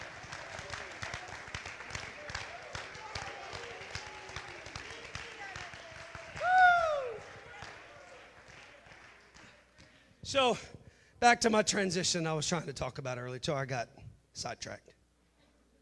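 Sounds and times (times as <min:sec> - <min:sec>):
audience clapping hands: 0:00.0 - 0:10.0
speech: 0:10.3 - 0:14.9.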